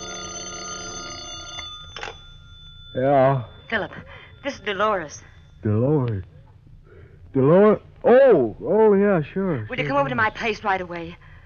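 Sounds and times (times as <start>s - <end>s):
telephone ringing on a night table: 0.0s - 5.6s
speech: 2.9s - 6.3s, 7.3s - 11.2s.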